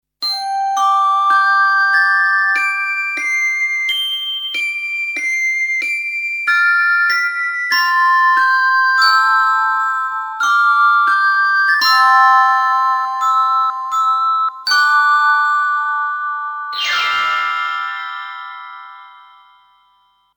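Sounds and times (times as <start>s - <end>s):
glockenspiel: 0.2s - 20.3s.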